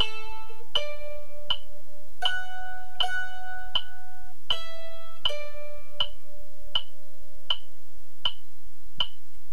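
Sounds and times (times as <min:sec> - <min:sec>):
mandolin playing in the key of D at 80 bpm: 0:00.0 - 0:07.2.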